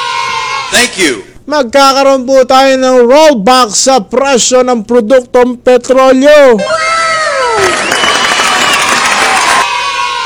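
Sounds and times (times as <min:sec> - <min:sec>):
speech: 0:00.7 - 0:07.0, 0:07.6 - 0:08.0
studio audience cheering and clapping: 0:06.8 - 0:10.2.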